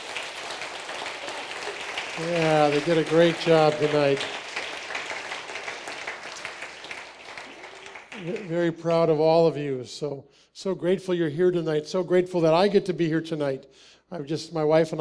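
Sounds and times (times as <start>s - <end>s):
crowd clapping: 0.0s - 9.0s
speech: 2.2s - 4.4s, 8.2s - 14.9s.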